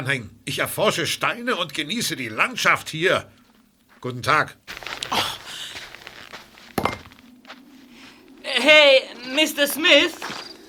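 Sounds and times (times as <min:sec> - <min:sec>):
speech: 0:00.0 - 0:03.4, 0:04.0 - 0:05.3, 0:08.7 - 0:10.4
footsteps of a man walking away across a national park: 0:03.3 - 0:04.1, 0:04.7 - 0:08.5, 0:09.6 - 0:10.6.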